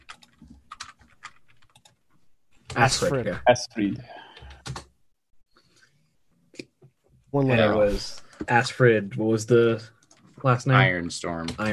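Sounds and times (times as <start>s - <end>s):
faint typing on a computer keyboard: 0.0s - 2.0s, 4.4s - 4.9s
speech: 2.7s - 4.2s, 7.3s - 11.7s.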